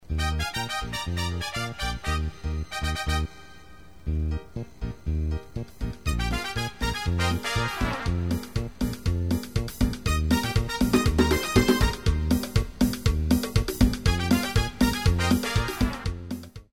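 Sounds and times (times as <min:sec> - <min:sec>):
cumbia music: 0:00.0 - 0:16.7.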